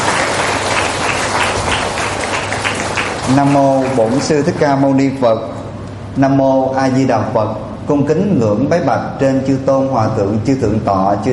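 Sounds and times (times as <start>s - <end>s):
audience applause: 0.0s - 4.5s
speech: 3.3s - 5.6s, 6.2s - 11.3s.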